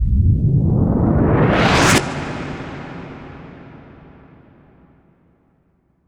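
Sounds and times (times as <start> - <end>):
impact whoosh: 0.0 - 3.5.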